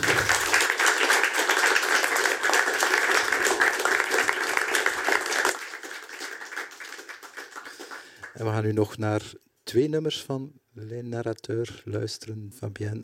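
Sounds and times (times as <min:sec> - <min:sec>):
audience applause: 0:00.0 - 0:08.4
speech: 0:08.4 - 0:13.0.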